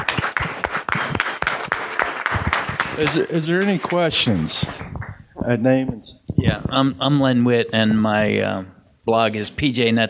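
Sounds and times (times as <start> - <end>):
audience applause: 0.0 - 5.2
speech: 3.0 - 4.9, 5.5 - 10.0.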